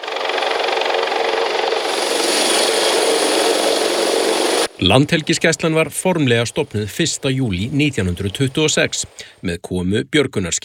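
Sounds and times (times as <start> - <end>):
coast guard helicopter landing with rotor and turbine roar: 0.0 - 7.9
speech: 4.8 - 10.6.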